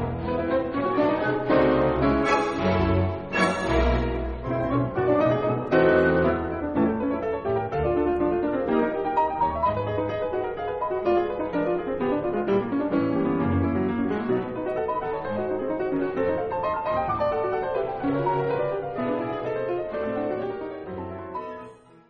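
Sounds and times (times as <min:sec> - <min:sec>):
piano toccata: 0:00.0 - 0:22.0.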